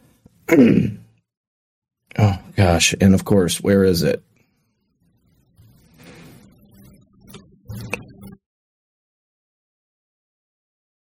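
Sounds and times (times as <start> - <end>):
cough: 0.5 - 1.0
speech: 0.5 - 1.0, 2.2 - 4.3.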